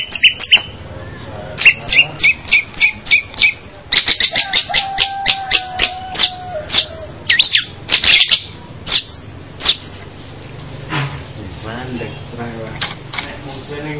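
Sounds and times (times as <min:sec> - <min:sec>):
bird chirping in high sharp notes: 0:00.0 - 0:10.0.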